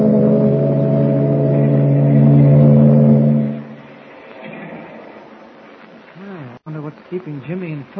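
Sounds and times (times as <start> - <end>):
ship engine droning while leaving the harbor: 0.0 - 5.6.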